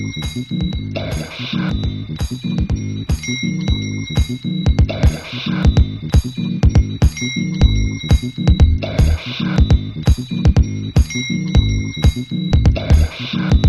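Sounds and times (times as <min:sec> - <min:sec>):
drum sounds: 0:00.2 - 0:13.6.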